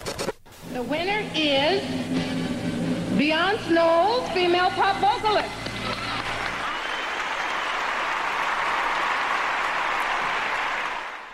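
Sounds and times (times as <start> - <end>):
speech: 0.8 - 2.2, 3.2 - 5.6
applause: 5.6 - 11.3.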